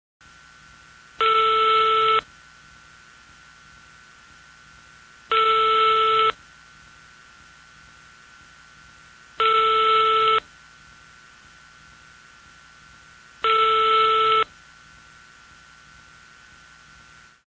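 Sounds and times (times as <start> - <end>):
phone call sound: 1.2 - 2.2, 5.3 - 6.4, 9.4 - 10.4, 13.4 - 14.5.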